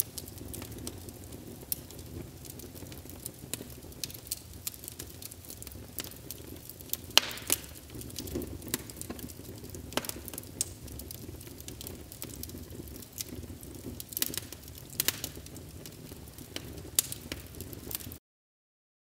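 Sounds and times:
fire ambience: 0:00.0 - 0:18.2.

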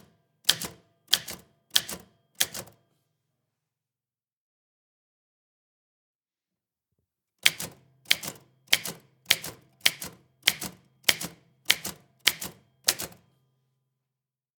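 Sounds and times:
typewriter typing: 0:00.5 - 0:02.8, 0:07.4 - 0:13.2.

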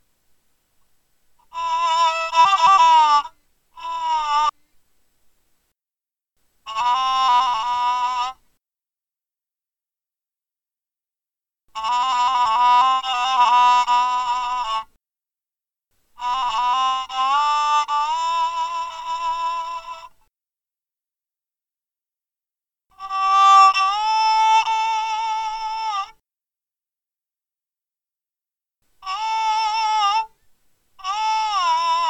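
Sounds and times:
one string phonofiddle: 0:01.4 - 0:04.6, 0:06.7 - 0:08.4, 0:11.8 - 0:14.9, 0:16.2 - 0:20.2, 0:23.0 - 0:26.2, 0:29.0 - 0:30.4, 0:31.0 - 0:32.0.

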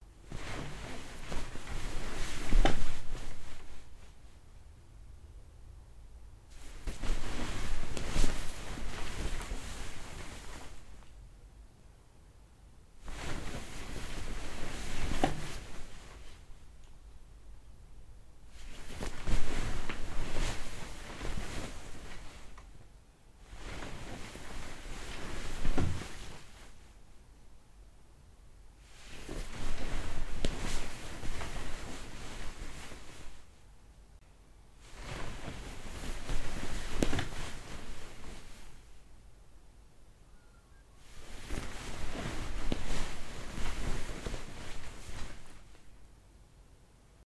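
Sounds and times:
person sitting up and down in bed: 0:00.2 - 0:04.5, 0:06.5 - 0:11.1, 0:13.0 - 0:16.7, 0:18.4 - 0:27.0, 0:28.8 - 0:33.6, 0:34.8 - 0:39.0, 0:41.0 - 0:46.0.

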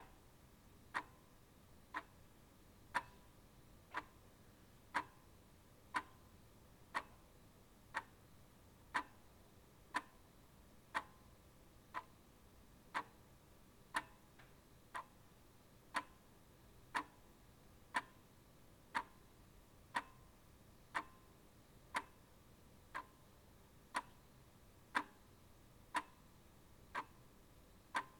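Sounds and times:
clock ticking: 0:00.9 - 0:01.2, 0:01.9 - 0:02.1, 0:02.9 - 0:03.2, 0:03.9 - 0:04.1, 0:04.9 - 0:05.2, 0:05.9 - 0:06.2, 0:06.9 - 0:07.2, 0:07.9 - 0:08.1, 0:08.9 - 0:09.2, 0:10.9 - 0:11.2, 0:12.9 - 0:13.1, 0:15.9 - 0:16.2, 0:16.9 - 0:17.2, 0:17.9 - 0:18.2, 0:18.9 - 0:19.2, 0:19.9 - 0:20.3, 0:20.9 - 0:21.2, 0:21.9 - 0:22.2, 0:22.9 - 0:23.1, 0:23.9 - 0:24.2, 0:24.9 - 0:25.2, 0:25.9 - 0:26.2, 0:26.9 - 0:27.2, 0:27.9 - 0:28.1.

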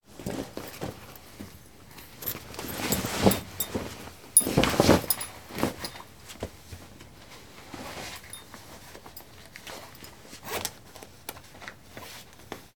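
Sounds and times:
trousers with belt being taken off: 0:00.2 - 0:06.0.

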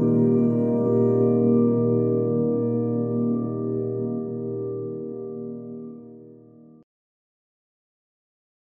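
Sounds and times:
shimmery guitar atmosphere: 0:00.0 - 0:06.8.

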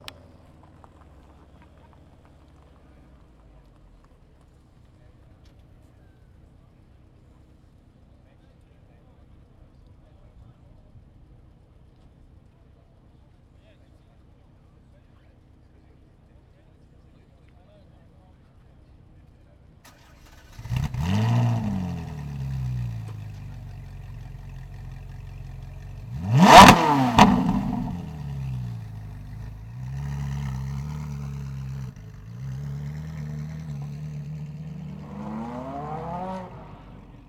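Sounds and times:
Ferrari engine starting and driving off: 0:19.9 - 0:37.2.

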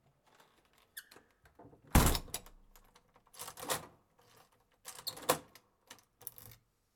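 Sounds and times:
door: 0:02.0 - 0:02.6.

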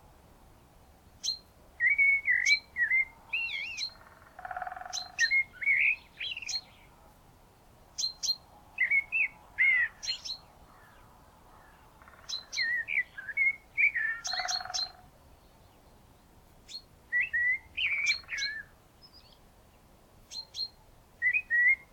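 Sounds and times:
birds on a spring morning: 0:01.1 - 0:21.9
woodpecker on a spring morning: 0:03.8 - 0:05.4, 0:12.0 - 0:12.8, 0:14.0 - 0:15.0.

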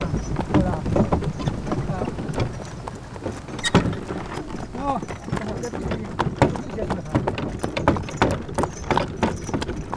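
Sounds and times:
horse hooves clopping at an uneven walk: 0:00.0 - 0:09.9.

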